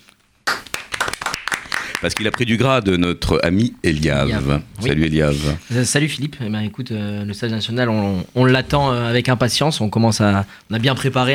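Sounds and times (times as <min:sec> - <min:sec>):
audience applause: 0:00.5 - 0:02.5
speech: 0:02.0 - 0:11.3.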